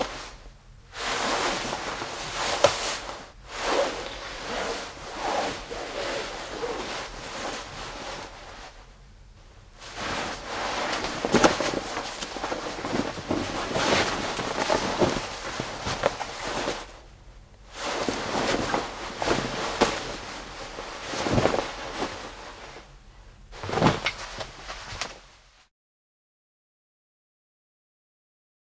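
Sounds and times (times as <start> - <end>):
denim jacket: 1.0 - 8.4, 10.0 - 17.0, 17.8 - 22.8.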